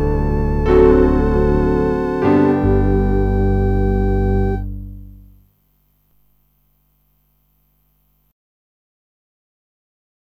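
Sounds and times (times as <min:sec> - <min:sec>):
piano: 0:00.0 - 0:05.0
organ: 0:00.0 - 0:05.2.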